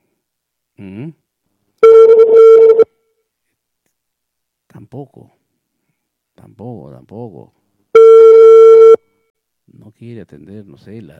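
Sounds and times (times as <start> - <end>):
ringback tone of an outgoing telephone call to an office: 1.8 - 2.9, 8.0 - 9.0
speech: 4.9 - 5.4, 6.4 - 7.6, 9.7 - 11.1.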